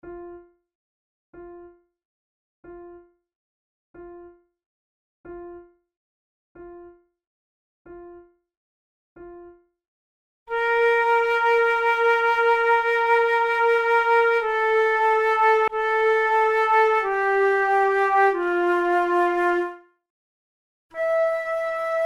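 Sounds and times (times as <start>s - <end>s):
slow flute sonata movement: 10.5s - 19.9s, 21.0s - 22.0s.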